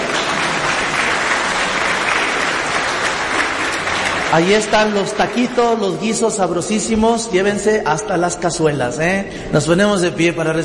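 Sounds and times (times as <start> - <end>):
audience applause: 0.0 - 5.9
speech: 4.3 - 10.6.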